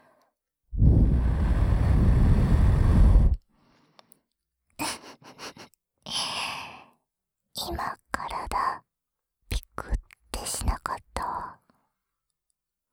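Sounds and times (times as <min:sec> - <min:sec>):
breath blown into the ear: 0:00.8 - 0:03.4.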